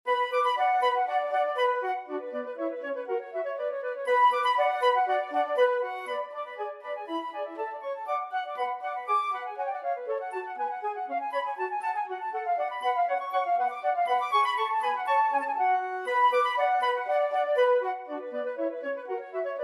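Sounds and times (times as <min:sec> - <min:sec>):
flutes playing: 0:00.1 - 0:19.6.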